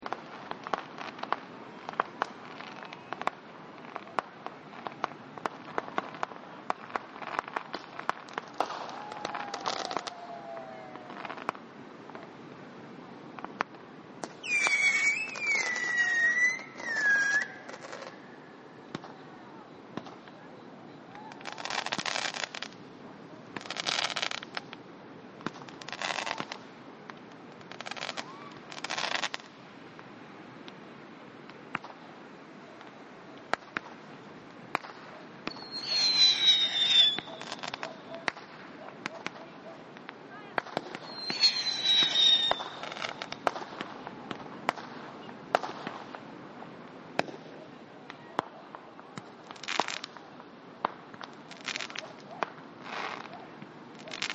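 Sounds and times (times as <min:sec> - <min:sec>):
fireworks on the beach: 0:00.0 - 0:12.4, 0:13.2 - 0:54.3.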